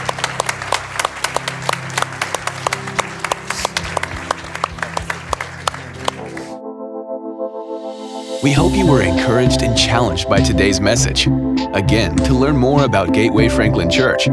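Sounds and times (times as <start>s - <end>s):
church congregation applause: 0.0s - 6.6s
speech: 8.4s - 14.3s.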